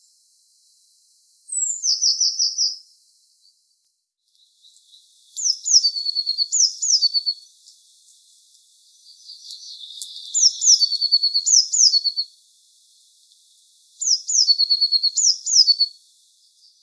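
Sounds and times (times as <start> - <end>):
Eurasian blue tit calls: 5.4 - 7.4, 9.1 - 12.3, 14.0 - 15.9.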